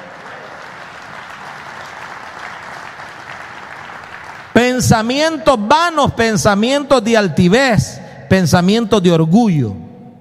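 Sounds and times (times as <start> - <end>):
audience clapping: 0.0 - 5.1
speech: 4.8 - 9.8.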